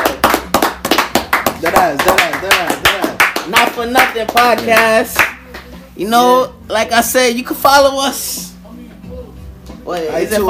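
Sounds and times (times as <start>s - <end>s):
people clapping: 0.0s - 5.8s
speech: 1.8s - 5.4s, 6.0s - 8.5s, 9.8s - 10.4s.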